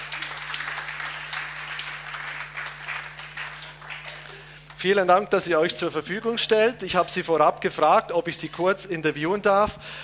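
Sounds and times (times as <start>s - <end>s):
audience applause: 0.0s - 4.9s
low constant hum: 0.0s - 10.0s
speech: 4.8s - 10.0s.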